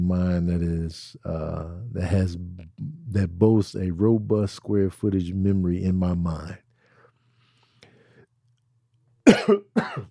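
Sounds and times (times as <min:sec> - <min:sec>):
speech: 0:00.1 - 0:06.6, 0:09.5 - 0:10.0
person coughing after choking on something that went down the wrong pipe: 0:09.2 - 0:10.0.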